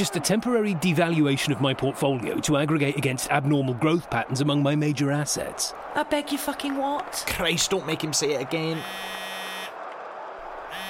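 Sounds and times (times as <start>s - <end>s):
speech: 0.0s - 9.2s
phone buzzing with incoming call: 8.8s - 9.8s.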